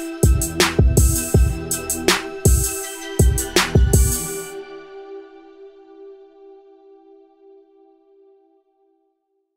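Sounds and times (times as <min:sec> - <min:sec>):
hard energetic piano trap rap beat instrumental: 0:00.0 - 0:04.6.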